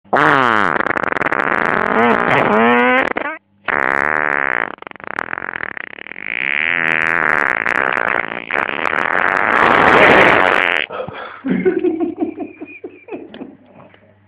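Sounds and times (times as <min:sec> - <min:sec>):
fart: 0:00.1 - 0:10.9
laughter: 0:10.9 - 0:13.9.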